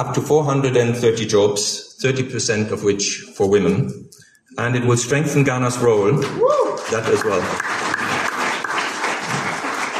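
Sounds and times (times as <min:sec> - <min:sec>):
speech: 0:00.0 - 0:07.8
audience applause: 0:06.5 - 0:09.9.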